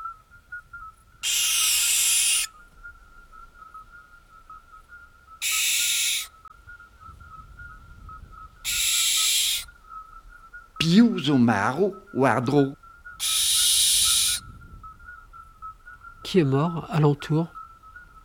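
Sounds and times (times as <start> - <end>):
faint high whistling tone: 0.0 - 18.2
owl screeches: 1.2 - 2.6, 5.4 - 6.4, 8.6 - 9.7, 13.2 - 14.4
speech: 10.9 - 12.8, 16.3 - 17.6.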